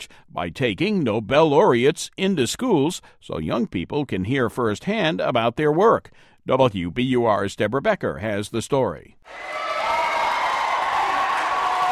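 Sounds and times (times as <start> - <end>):
speech: 0.0 - 9.7
raucous cheering and applause in school gym: 9.3 - 11.8.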